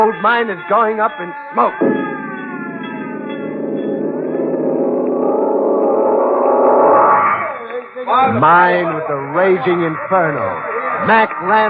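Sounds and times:
speech: 0.0 - 2.3, 8.1 - 11.6
fire bell ringing: 1.7 - 6.8.

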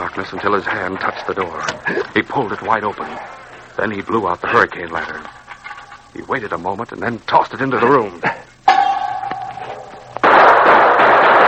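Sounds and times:
speech: 0.2 - 5.4, 6.1 - 8.4
gunshots: 10.2 - 11.4.

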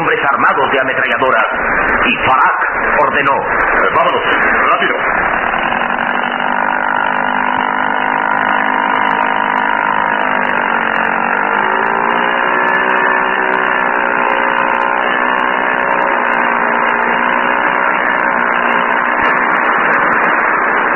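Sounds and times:
speech: 0.2 - 5.0
motorboat engine speeding away from floating platform: 1.4 - 20.9.

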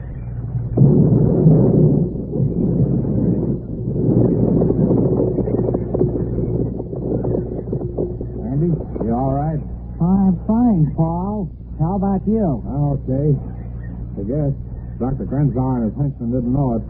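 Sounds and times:
rolling rumble and roar of atom bomb blast: 0.0 - 16.8
atom bomb explosion: 0.6 - 9.5
speech: 10.8 - 13.5, 14.2 - 16.8.

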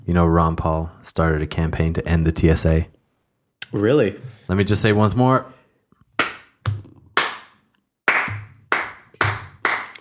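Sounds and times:
speech: 0.1 - 3.0, 3.7 - 5.6
slow hand claps: 6.2 - 9.9.

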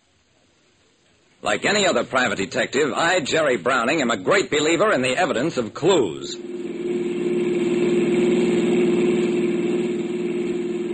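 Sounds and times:
speech: 1.4 - 6.6
car engine running while driving: 6.4 - 10.9.

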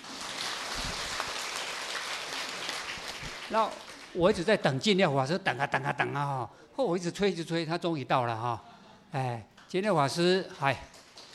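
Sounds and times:
audience applause: 0.0 - 4.5, 10.6 - 11.3
speech: 3.5 - 10.9.

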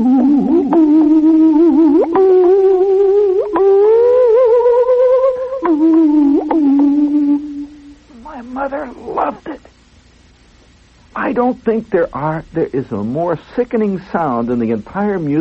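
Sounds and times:
Hawaiian steel guitar music: 0.0 - 7.9
speech: 11.4 - 15.3.

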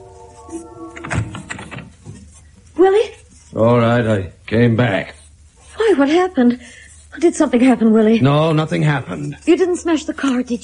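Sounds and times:
bedroom door creaking open softly: 0.6 - 2.1
speech: 2.8 - 5.2, 5.9 - 10.6.

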